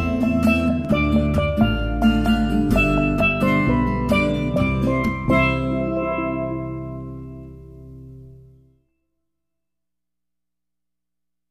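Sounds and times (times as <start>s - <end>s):
jazz duo on steel strings: 0.0s - 8.7s.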